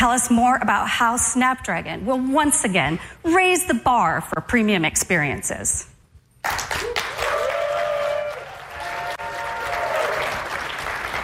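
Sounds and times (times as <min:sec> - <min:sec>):
speech: 0:00.0 - 0:07.0
lukewarm audience applause: 0:06.4 - 0:11.2.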